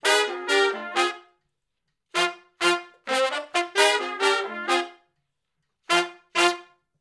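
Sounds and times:
R&B horn section riff in F: 0.0s - 1.3s, 2.2s - 5.0s, 5.9s - 6.8s.

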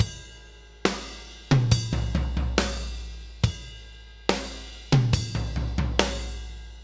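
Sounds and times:
laid back drum loop: 0.9s - 3.7s, 4.3s - 6.8s.

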